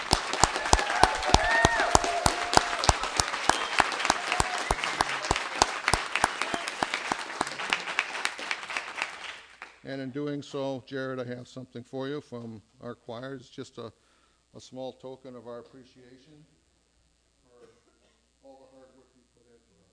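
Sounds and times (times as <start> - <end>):
audience applause: 0.0 - 9.8
speech: 9.9 - 16.6.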